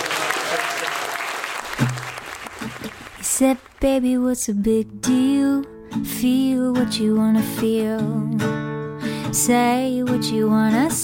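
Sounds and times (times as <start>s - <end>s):
audience applause: 0.0s - 3.3s
speech: 3.4s - 8.6s, 9.3s - 11.0s.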